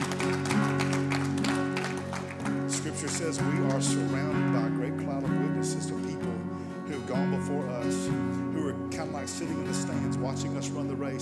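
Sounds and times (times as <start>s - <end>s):
congregation applauding during a church service: 0.0s - 4.6s
speech: 3.0s - 11.2s.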